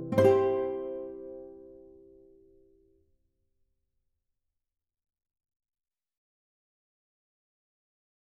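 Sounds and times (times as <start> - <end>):
guitar melody: 0.0 - 2.6.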